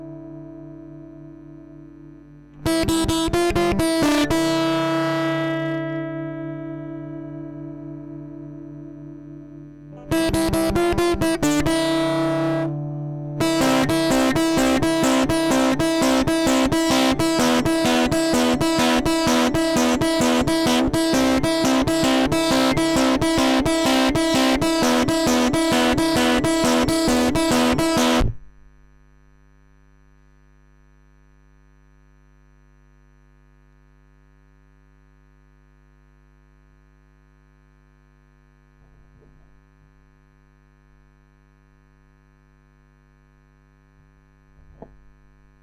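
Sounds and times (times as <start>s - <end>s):
lead guitar: 0.0s - 28.4s.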